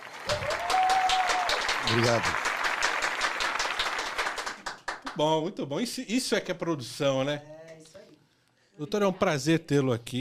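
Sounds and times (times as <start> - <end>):
applause: 0.0 - 5.3
speech: 1.9 - 2.5, 5.2 - 7.6, 8.8 - 10.2.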